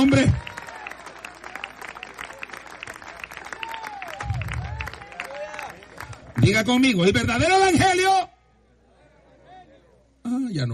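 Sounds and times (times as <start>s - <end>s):
speech: 0.0s - 0.5s, 6.4s - 8.3s, 10.6s - 10.7s
audience applauding: 0.0s - 6.7s.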